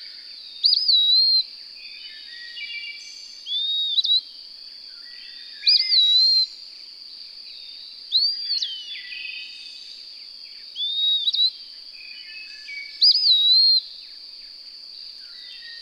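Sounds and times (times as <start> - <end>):
bird song of clear whistled phrases with warbled start and gliding tail: 0.6 - 4.3, 5.0 - 6.6, 7.5 - 9.8, 10.8 - 13.9.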